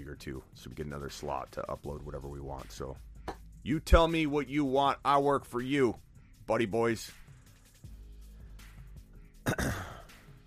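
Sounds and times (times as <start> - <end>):
speech: 0.1 - 7.2
person clearing throat: 9.4 - 10.1.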